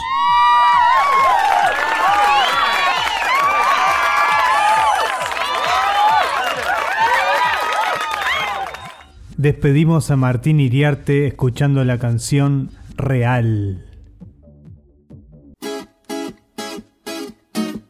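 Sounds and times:
crowd cheering and shouting: 0:00.0 - 0:09.1
rhythmic clapping: 0:00.8 - 0:09.1
speech: 0:09.4 - 0:13.9.

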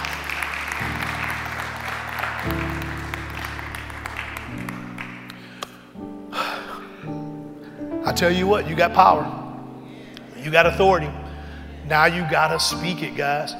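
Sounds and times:
audience hand clapping in praise: 0:00.0 - 0:05.9
sustained organ chords: 0:00.0 - 0:13.5
speech: 0:02.5 - 0:02.8, 0:08.2 - 0:09.4, 0:10.4 - 0:11.2, 0:11.9 - 0:13.5.

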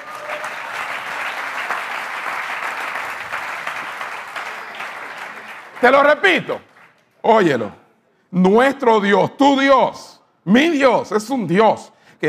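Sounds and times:
audience applause: 0:00.0 - 0:07.0
speech: 0:05.8 - 0:12.2.

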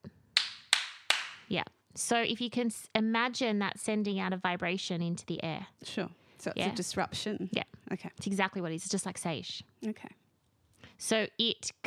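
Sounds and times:
loud hand claps: 0:00.4 - 0:01.5
speech: 0:01.5 - 0:10.2, 0:11.0 - 0:11.8.

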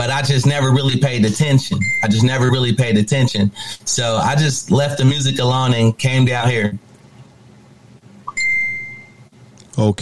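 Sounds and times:
speech: 0:00.0 - 0:06.8, 0:09.8 - 0:09.9
low hum: 0:00.0 - 0:09.9
phone notification chime: 0:08.3 - 0:09.2.

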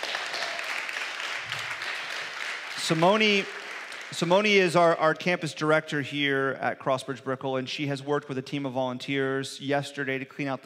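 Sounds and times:
audience applause: 0:00.0 - 0:04.2
speech: 0:02.9 - 0:10.6.

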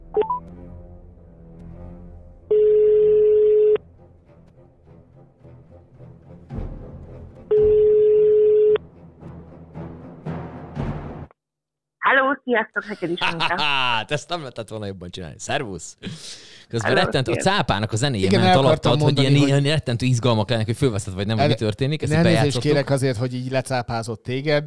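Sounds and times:
outgoing phone call ringing tone: 0:02.5 - 0:03.8, 0:07.5 - 0:08.8
speech: 0:12.5 - 0:24.6
laughter: 0:12.8 - 0:14.2.

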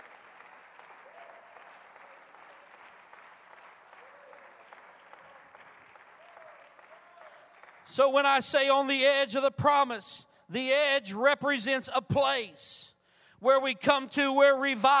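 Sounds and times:
audience clapping hands: 0:00.0 - 0:08.6
speech: 0:07.9 - 0:14.9.

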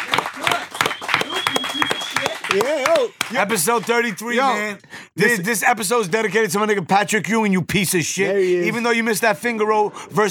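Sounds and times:
crowd clapping: 0:00.0 - 0:04.6
speech: 0:02.5 - 0:10.2.

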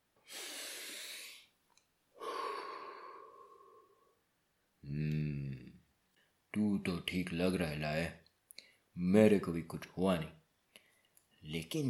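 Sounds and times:
long deep breath: 0:00.2 - 0:01.6, 0:02.2 - 0:04.2
speech: 0:04.9 - 0:05.4, 0:06.6 - 0:08.2, 0:09.0 - 0:10.4, 0:11.4 - 0:11.8.

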